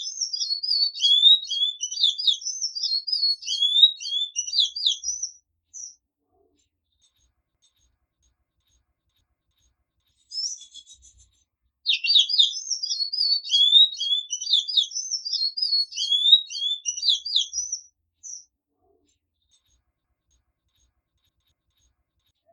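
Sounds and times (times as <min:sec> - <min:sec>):
Sanhaco Azul singing: 0:00.0 - 0:06.0, 0:10.3 - 0:11.3, 0:11.9 - 0:18.5.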